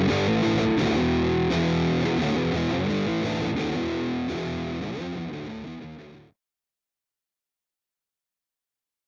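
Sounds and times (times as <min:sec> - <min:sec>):
modern rock guitar strumming: 0:00.0 - 0:06.4.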